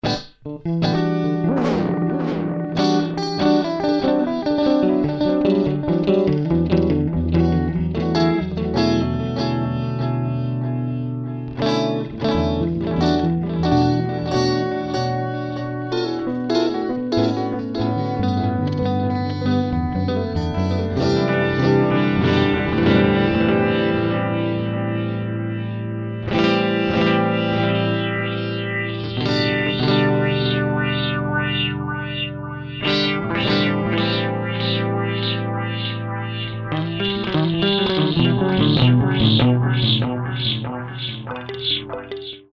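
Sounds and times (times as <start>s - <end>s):
guitar: 0.0s - 42.5s.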